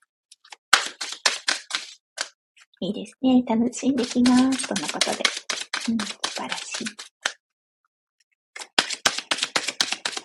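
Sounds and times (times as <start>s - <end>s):
oracle card being drawn from a deck: 0.4s - 2.3s, 4.0s - 7.4s, 8.6s - 10.2s
speech: 2.8s - 7.1s.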